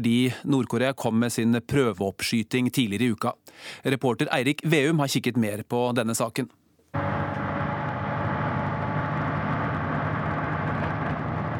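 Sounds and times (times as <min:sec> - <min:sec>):
speech: 0:00.0 - 0:06.6
heavy military vehicle moving through a forest in North Korea: 0:07.0 - 0:11.5.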